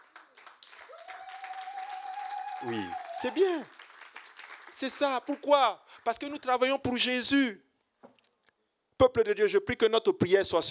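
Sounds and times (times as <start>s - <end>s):
church congregation applauding: 0.0s - 6.6s
speech: 2.6s - 3.8s, 4.7s - 7.6s, 9.0s - 10.6s.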